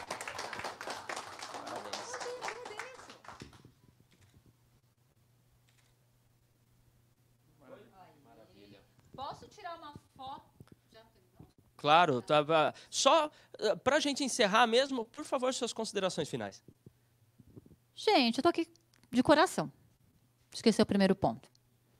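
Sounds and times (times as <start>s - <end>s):
applause: 0.0s - 3.7s
speech: 11.8s - 16.7s, 18.0s - 19.8s, 20.6s - 21.5s.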